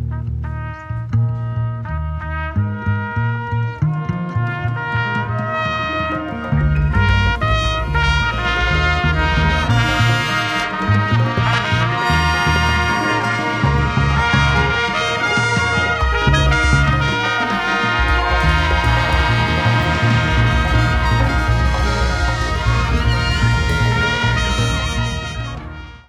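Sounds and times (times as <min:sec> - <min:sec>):
trumpet: 0:00.1 - 0:26.0.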